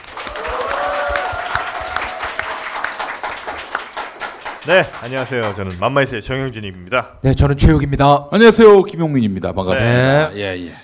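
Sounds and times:
audience applause: 0.0 - 6.1
speech: 4.7 - 10.8.

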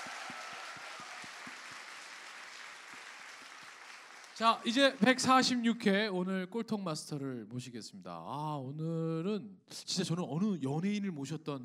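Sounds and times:
audience applause: 0.0 - 5.4
speech: 4.4 - 11.6.

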